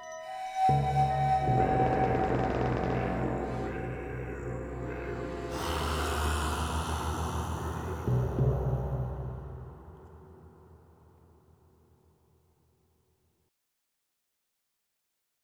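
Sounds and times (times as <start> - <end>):
interior ambience of ruins: 0.5 - 11.6.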